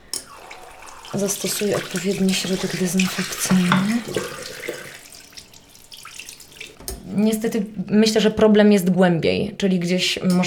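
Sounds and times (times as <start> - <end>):
tap water running from a faucet to wash a hedgehog: 0.0 - 7.9
speech: 1.1 - 4.9, 7.2 - 10.4.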